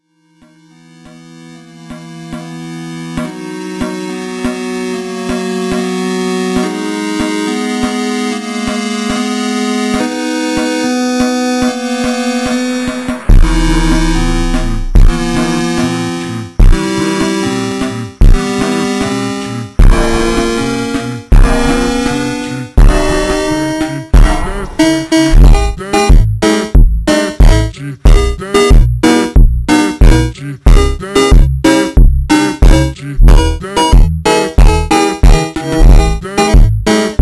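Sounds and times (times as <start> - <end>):
slowed funk music: 0.4 - 10.1, 10.8 - 37.2.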